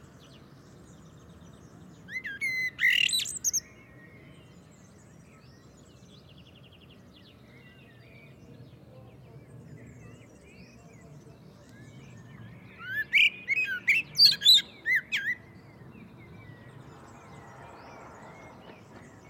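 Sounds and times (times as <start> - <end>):
Common blackbird Turdus merula whistling and twittering: 2.1 - 3.8, 12.2 - 15.7.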